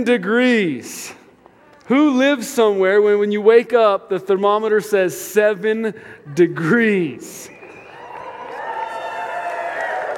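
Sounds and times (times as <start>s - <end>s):
speech: 0.0s - 1.2s, 1.9s - 7.6s
crowd cheering and hollering: 7.5s - 10.1s.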